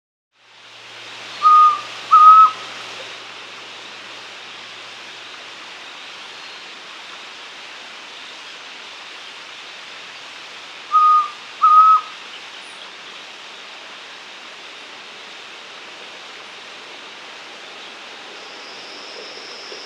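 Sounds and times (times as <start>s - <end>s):
White-throated antpitta song of two whistled notes in South America: 1.4s - 2.6s, 10.9s - 12.9s.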